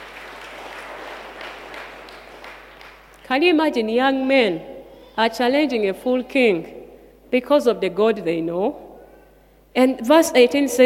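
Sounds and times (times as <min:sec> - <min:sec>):
audience clapping: 0:00.0 - 0:03.3
speech: 0:03.3 - 0:08.8, 0:09.8 - 0:10.8.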